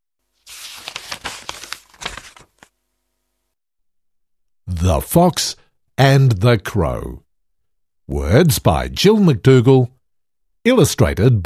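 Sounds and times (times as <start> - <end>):
book paper pages being flipped: 0.3 - 2.8
speech: 4.8 - 7.2, 8.1 - 9.9, 10.6 - 11.4.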